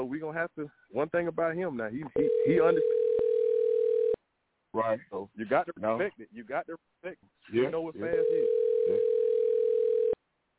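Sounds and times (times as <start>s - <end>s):
speech: 0.0s - 3.0s, 4.7s - 9.2s
telephone dial tone while placing a call: 2.2s - 4.2s, 8.2s - 10.2s.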